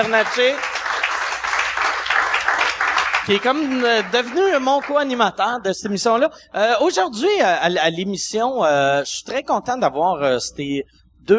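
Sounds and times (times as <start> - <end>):
speech: 0.0 - 0.7, 3.2 - 11.3
audience applause: 0.0 - 5.1.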